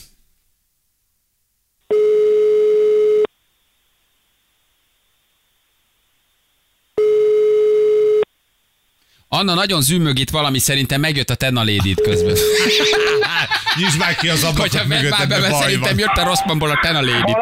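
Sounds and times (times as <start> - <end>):
telephone ringback tone: 1.9 - 3.3, 7.0 - 8.3, 12.0 - 13.3
speech: 9.3 - 17.3
laughter: 11.7 - 17.3.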